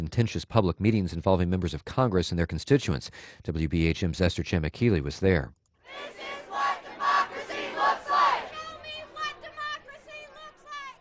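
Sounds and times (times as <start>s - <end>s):
speech: 0.1s - 6.5s
crowd of residents shouting rhythmically at town hall entrance: 5.8s - 10.9s
murmur of many overlapping voices of residents: 5.9s - 10.9s.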